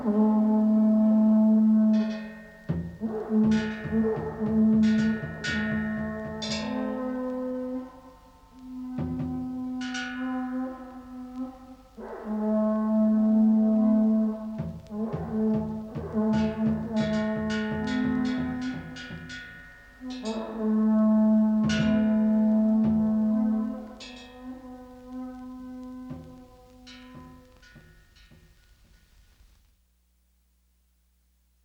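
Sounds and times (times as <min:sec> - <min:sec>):
Japanese trumpet shell: 0:00.0 - 0:29.7
Japanese taiko drum: 0:02.4 - 0:06.8, 0:08.9 - 0:09.6, 0:14.6 - 0:20.4, 0:21.5 - 0:23.6, 0:26.0 - 0:28.5.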